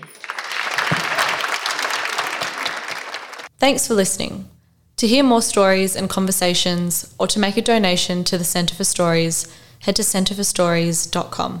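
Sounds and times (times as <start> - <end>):
audience applause: 0.0 - 3.5
speech: 3.6 - 11.5.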